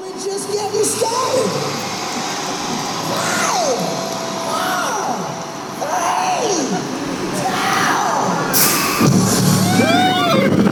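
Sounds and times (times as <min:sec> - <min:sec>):
thrill-ride launch countdown swooping tones: 0:00.0 - 0:10.2
crowd roar: 0:00.0 - 0:10.7
thrill-ride riders screaming: 0:03.0 - 0:08.4, 0:09.6 - 0:10.7.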